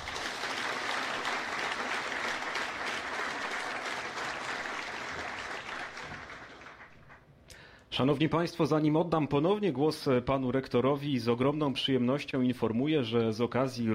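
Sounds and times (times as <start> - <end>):
crowd applauding: 0.0 - 7.3
speech: 8.0 - 13.9.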